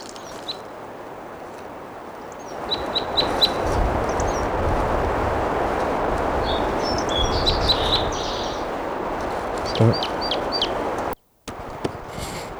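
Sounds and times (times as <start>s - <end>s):
crossbill singing: 2.0s - 12.5s
rushing hiss of wind or water: 2.6s - 12.5s.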